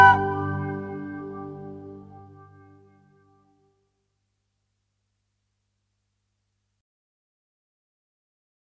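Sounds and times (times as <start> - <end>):
Irish lullaby: 0.0 - 3.1.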